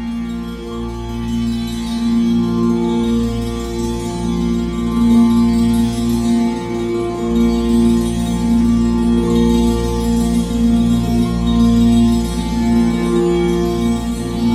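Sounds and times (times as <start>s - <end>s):
tambura with vaulted body tuned F-B-B-B played dynamically: 0.1s - 14.5s.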